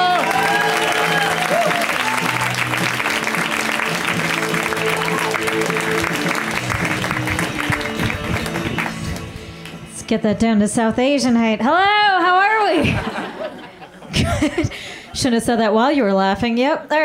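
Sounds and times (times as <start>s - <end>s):
comedy club audience clapping and cheering for a comedian: 0.0s - 9.8s
speech: 10.1s - 13.2s, 14.4s - 17.0s
laughter: 12.7s - 15.1s.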